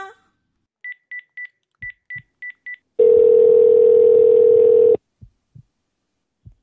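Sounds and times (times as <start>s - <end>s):
steady telephone tone: 3.0s - 5.0s
soft low thumps: 5.1s - 5.8s, 6.4s - 6.6s.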